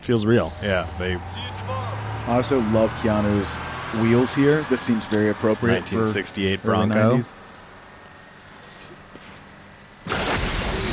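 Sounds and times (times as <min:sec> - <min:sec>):
speech: 0:00.0 - 0:07.4
loud movie explosion: 0:10.1 - 0:10.9.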